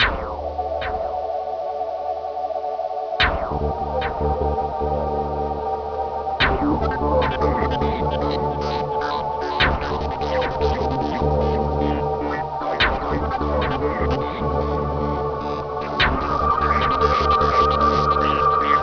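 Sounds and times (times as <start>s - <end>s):
trance music: 0.0s - 18.8s.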